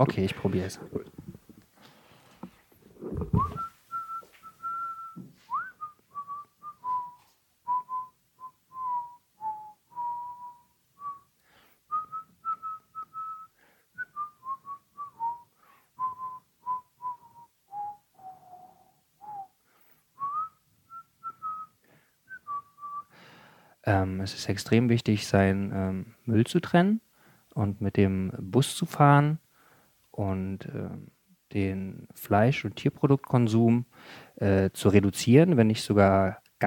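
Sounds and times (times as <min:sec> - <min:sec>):
speech: 0:00.0 - 0:01.1, 0:24.2 - 0:27.0, 0:27.6 - 0:29.4, 0:30.2 - 0:36.6
person whistling to mask background noise: 0:03.2 - 0:11.3, 0:11.9 - 0:19.6, 0:20.2 - 0:23.1.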